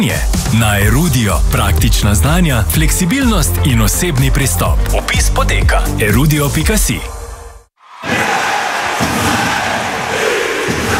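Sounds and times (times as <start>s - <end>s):
speech: 0.0s - 7.2s
ice hockey crowd cheering: 7.8s - 10.9s.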